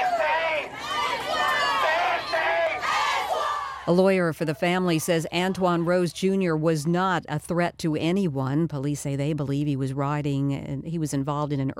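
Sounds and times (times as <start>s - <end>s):
protest crowd of demonstrators shouting: 0.0s - 6.1s
speech: 3.9s - 11.7s.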